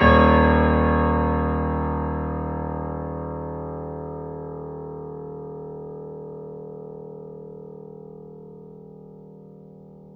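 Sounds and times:
grand piano D sharp 0 note mezzo-forte off mic: 0.0 - 5.2.

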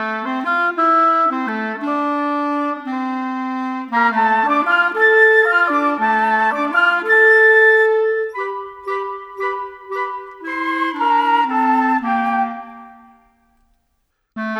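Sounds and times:
oboe: 0.0 - 13.7, 14.4 - 14.5
flute: 0.0 - 13.8, 14.4 - 14.5
clarinet: 0.0 - 14.5.

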